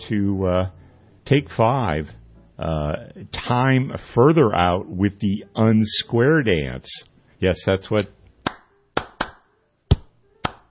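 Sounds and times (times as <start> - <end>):
speech: 0.1 - 8.2
sharp hand claps in a jazz recording: 8.4 - 10.6.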